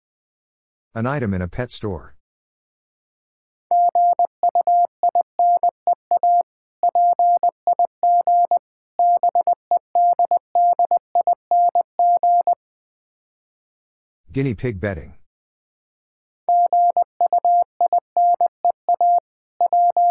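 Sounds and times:
speech: 0.9 - 2.2, 14.3 - 15.2
Morse code beeps at 20 words per minute: 3.7 - 12.6, 16.5 - 20.0.

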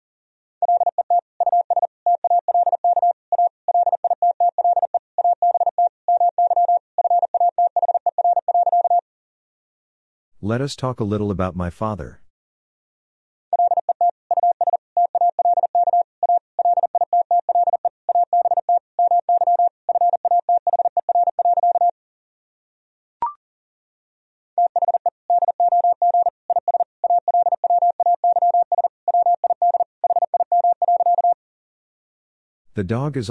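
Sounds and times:
Morse code tones at 40 words per minute: 0.6 - 9.0, 13.6 - 21.9, 24.6 - 31.4
speech: 10.4 - 12.2, 32.8 - 33.2.

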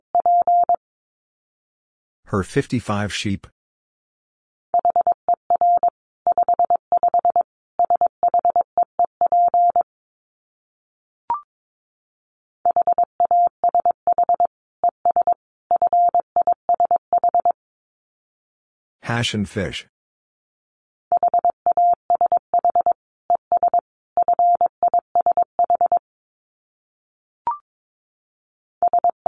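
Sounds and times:
Morse code beeps at 22 words per minute: 0.2 - 0.8, 4.8 - 9.8, 12.7 - 17.6, 21.1 - 26.0, 28.8 - 29.2
speech: 2.3 - 3.5, 19.1 - 19.9.

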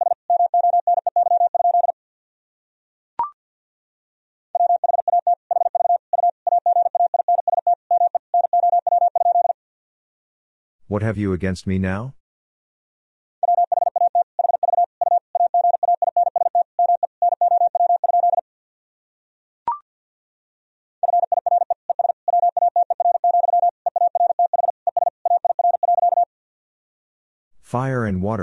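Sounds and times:
Morse code tones sent at 50 wpm: 0.0 - 1.9, 4.6 - 9.6, 13.4 - 18.4, 21.0 - 26.3
speech: 10.9 - 12.2, 27.8 - 28.4.

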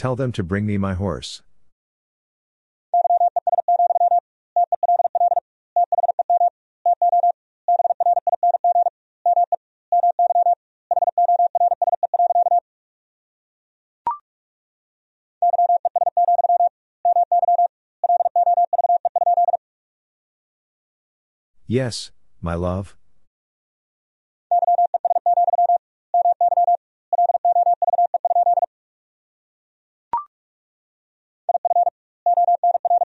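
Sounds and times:
speech: 0.0 - 1.5, 21.7 - 23.0
Morse code practice tones: 3.0 - 12.6, 15.4 - 19.6, 24.5 - 28.7, 31.5 - 33.0.

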